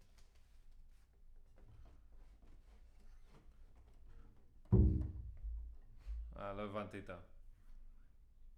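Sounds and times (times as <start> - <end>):
bass sound: 4.7 - 6.3.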